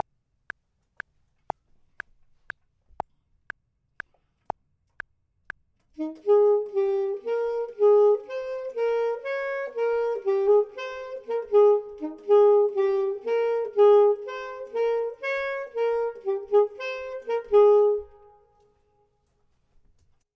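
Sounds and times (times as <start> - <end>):
saxophone: 6.0 - 18.9
clarinet: 6.0 - 19.0.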